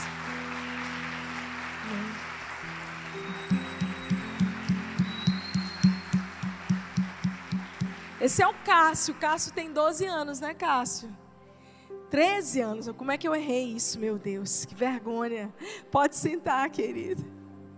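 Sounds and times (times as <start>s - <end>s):
audience applause: 0.0s - 9.5s
speech: 8.2s - 11.2s, 12.1s - 17.4s.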